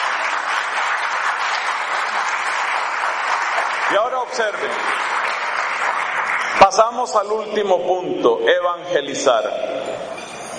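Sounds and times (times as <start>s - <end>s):
audience applause: 0.0s - 7.4s
speech: 3.9s - 5.4s, 6.6s - 9.7s.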